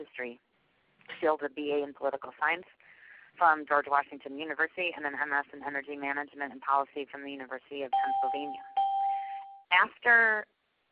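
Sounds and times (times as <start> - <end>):
speech: 0.1 - 0.5, 1.1 - 2.8, 3.4 - 8.7, 9.7 - 10.5
conference call join beeps: 7.9 - 9.7.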